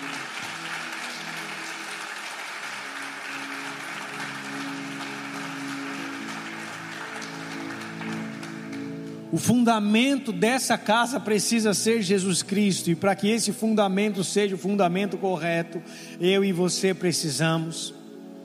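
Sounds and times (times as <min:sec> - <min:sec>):
audience applauding: 0:00.0 - 0:09.3
speech: 0:09.3 - 0:18.0.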